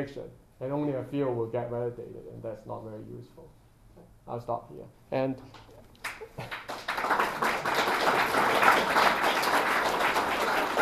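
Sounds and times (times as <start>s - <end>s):
speech: 0.0s - 9.0s
audience applause following a scientific talk: 5.5s - 10.8s.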